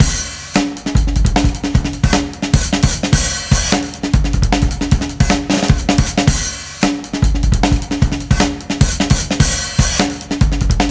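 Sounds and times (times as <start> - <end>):
breakbeat drums at 153 bpm: 0.0 - 10.9.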